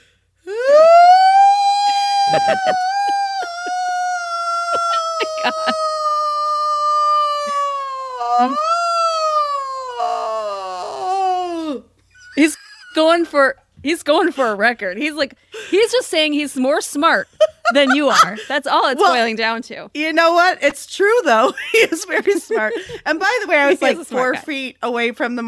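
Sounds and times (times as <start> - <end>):
person imitating an exaggerated drawn-out yawn: 0.5 - 11.9
laughter: 1.8 - 6.2, 17.4 - 19.2, 21.6 - 24.4
speech: 2.3 - 3.1, 5.4 - 5.9, 8.4 - 8.8, 12.4 - 25.4.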